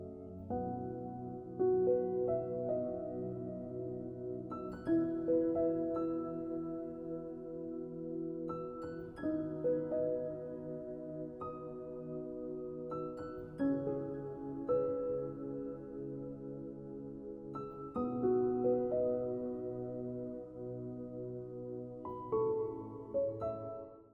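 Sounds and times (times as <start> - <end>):
piano ringtone: 0.5 - 23.9.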